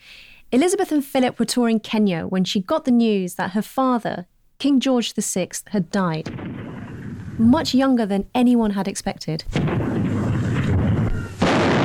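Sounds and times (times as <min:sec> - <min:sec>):
speech: 0:00.5 - 0:06.7, 0:07.4 - 0:09.9
gun salute fired by the Honourable Artillery Company at the Tower: 0:06.2 - 0:08.4, 0:09.4 - 0:11.8.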